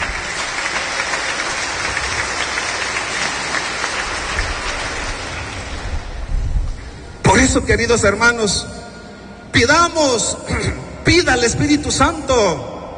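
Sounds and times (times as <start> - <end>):
audience applauding: 0.0 - 6.2
speech: 7.6 - 8.8, 9.5 - 12.7.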